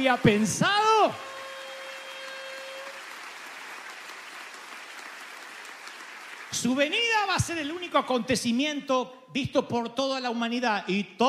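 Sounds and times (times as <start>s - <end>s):
speech: 0.0s - 1.3s, 6.5s - 11.2s
audience applauding loudly: 0.0s - 7.3s.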